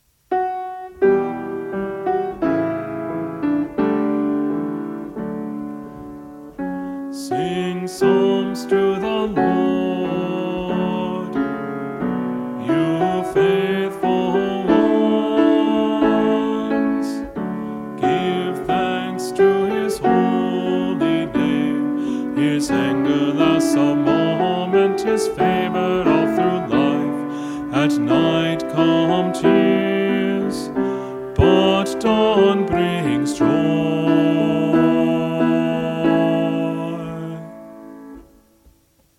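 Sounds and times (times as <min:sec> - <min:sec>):
choir practice melody: 0:00.4 - 0:38.5.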